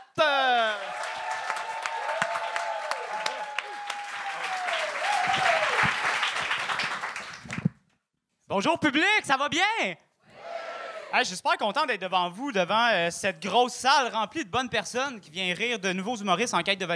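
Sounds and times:
crowd cheering: 0.3s - 7.5s, 10.3s - 11.3s
crowd applause: 0.7s - 7.6s
speech: 8.6s - 10.0s, 11.1s - 16.9s.

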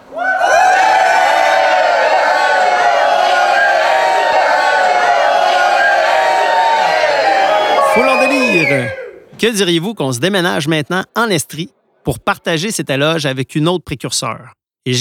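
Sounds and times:
crowd cheering in a standing ovation for Quebec community-supported agriculture pioneers: 0.0s - 9.3s
speech: 9.4s - 14.9s.

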